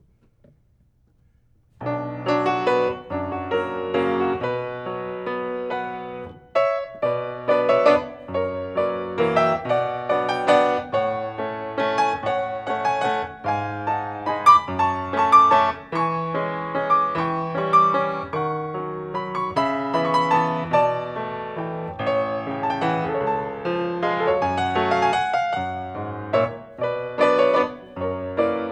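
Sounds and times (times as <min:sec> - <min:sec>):
waltz in B minor at 50 bpm moderato: 0:01.8 - 0:28.6.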